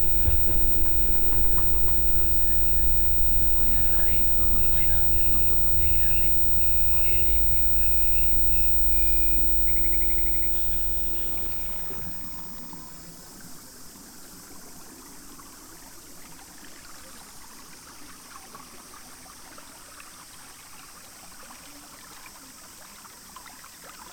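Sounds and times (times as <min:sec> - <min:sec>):
low rumbling engine-like drone in Kyoto: 0:00.0 - 0:13.4
voices: 0:00.0 - 0:13.5
steady hum: 0:00.0 - 0:13.6
even hiss: 0:00.0 - 0:14.0.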